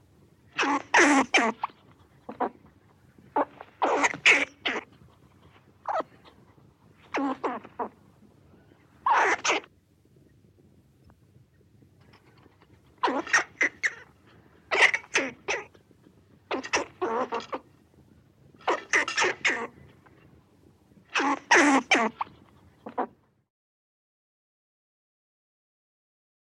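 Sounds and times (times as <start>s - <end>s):
forest squirrel: 0.5s - 8.0s, 8.7s - 9.7s, 12.0s - 15.8s, 16.5s - 17.7s, 18.6s - 20.4s, 21.0s - 23.2s.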